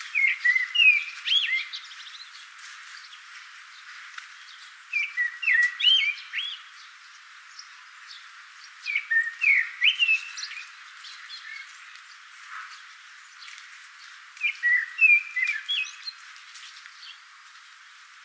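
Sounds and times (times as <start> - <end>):
common blackbird singing: 0.0 - 2.5, 4.4 - 12.2, 14.4 - 17.2.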